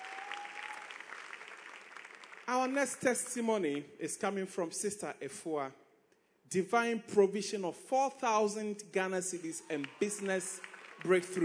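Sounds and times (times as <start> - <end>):
audience clapping in praise: 0.0 - 3.8, 9.4 - 11.4
speech: 2.5 - 5.8, 6.5 - 11.4.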